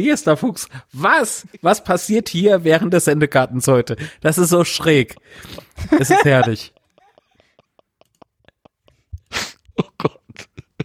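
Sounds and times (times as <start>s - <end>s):
speech: 0.0s - 6.8s
laughter: 4.4s - 10.8s
person coughing: 9.3s - 10.8s.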